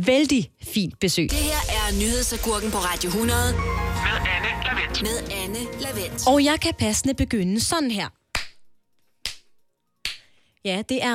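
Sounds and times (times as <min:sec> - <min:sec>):
speech: 0:00.0 - 0:08.2, 0:10.6 - 0:11.1
sharp hand claps swatting mosquitoes: 0:08.3 - 0:10.3.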